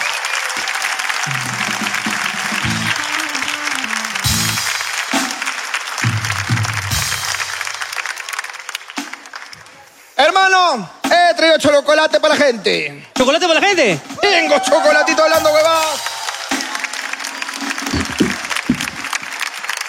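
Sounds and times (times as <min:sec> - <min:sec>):
audience applause: 0:00.0 - 0:10.1, 0:14.5 - 0:19.8
speech: 0:10.7 - 0:16.0.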